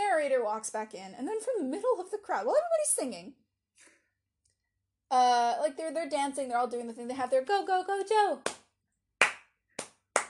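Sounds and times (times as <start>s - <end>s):
speech: 0.2s - 3.9s, 5.1s - 8.6s
rhythmic group clapping: 8.4s - 10.2s.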